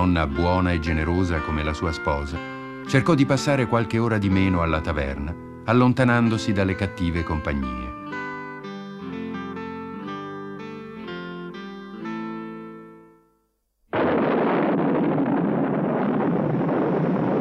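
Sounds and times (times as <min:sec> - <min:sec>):
speech: 0:00.0 - 0:07.9
heavy rain: 0:13.9 - 0:17.3.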